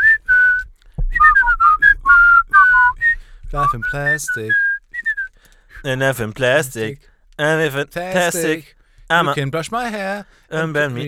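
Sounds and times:
person whistling a catchy pop melody: 0.0 - 5.9
speech: 3.5 - 4.7, 5.8 - 11.0.

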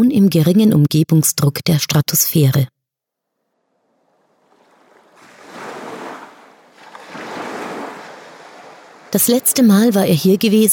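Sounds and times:
speech: 0.0 - 2.8, 9.1 - 10.7
roaring ocean surf breaking on shore: 3.7 - 10.5.

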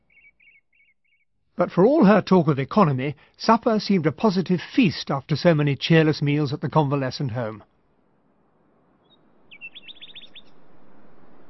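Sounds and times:
nightingales singing at night: 0.0 - 1.2, 9.5 - 10.6
speech: 1.6 - 7.7.

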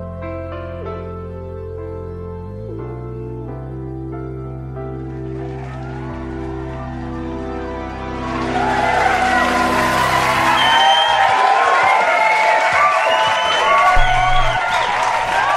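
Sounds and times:
audience applause and cheering: 4.9 - 15.5.

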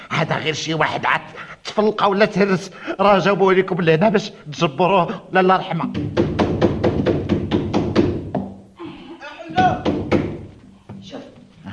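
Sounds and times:
speech: 0.3 - 6.2
loud pounding on a door: 5.8 - 8.6, 9.6 - 11.1.

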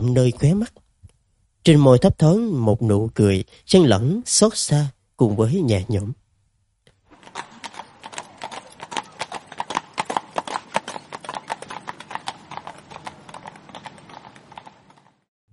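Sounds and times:
speech: 0.0 - 0.8, 1.6 - 6.2
hooves clip-clopping: 7.1 - 15.3
horses galloping: 7.1 - 15.3.

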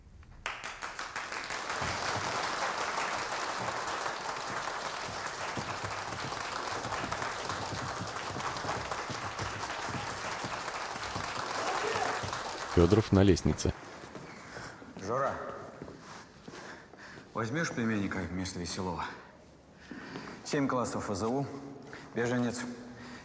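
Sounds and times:
standing ovation applause in auditorium: 0.4 - 13.9
speech: 12.8 - 13.9, 17.4 - 19.2, 20.5 - 22.8.

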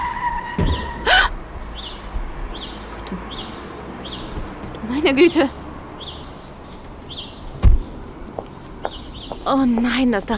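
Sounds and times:
car brakes squealing: 0.0 - 1.3
traffic rumble: 0.0 - 10.3
loud thump of a car hitting a dog: 0.6 - 1.3, 7.6 - 7.8
speech: 5.0 - 5.6, 9.5 - 10.3.

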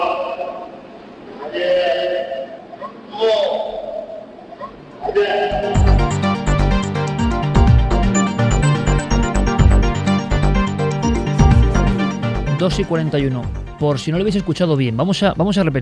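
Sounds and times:
elephant imitating human voice: 1.4 - 4.2, 4.9 - 5.8
speech: 1.5 - 1.8, 12.8 - 15.8
loud rhythmic music with a heavy beat: 5.6 - 13.8.

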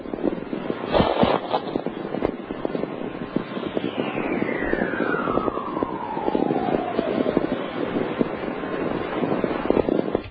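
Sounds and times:
crackling hissing static in a radio recording of a magnetic storm chorus: 0.0 - 10.2
long whistling tone of a magnetic storm chorus: 2.7 - 9.4.

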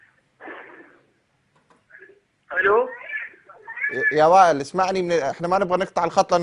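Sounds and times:
television playing in caller's background over a phone line: 1.9 - 4.6
speech: 2.6 - 3.0, 3.9 - 6.4.

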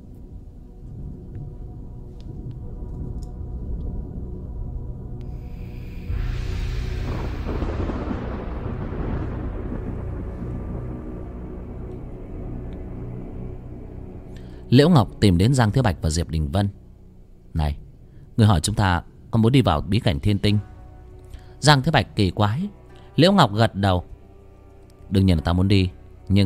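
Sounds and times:
meteor shower with rumbling thunderous impacts: 0.3 - 14.4
speech: 14.7 - 16.8, 17.5 - 17.8, 18.4 - 20.7, 21.6 - 24.1, 25.1 - 26.4.

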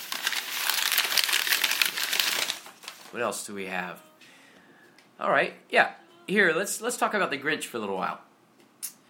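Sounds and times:
wrapping paper crinkling as a present is unwrapped: 0.0 - 3.2
speech: 3.1 - 4.1, 5.2 - 8.3.

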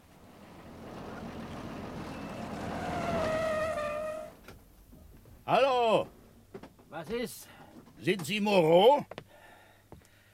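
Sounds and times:
high bus brake squeal: 0.0 - 4.6
large bus engine rumbling arriving at terminal stop: 0.0 - 5.5
speech: 5.5 - 6.1, 7.0 - 9.2.

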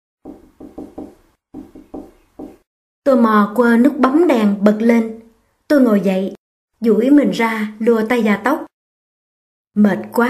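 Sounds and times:
knocking on a door: 0.2 - 2.7
speech: 3.1 - 8.7, 9.8 - 10.2.

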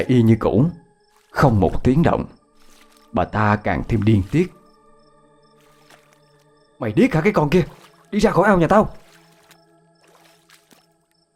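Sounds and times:
speech: 0.0 - 2.4, 3.1 - 4.6, 6.8 - 9.0
water splashing from vegetables washed by hand in a pond: 1.1 - 1.8, 2.5 - 11.2.

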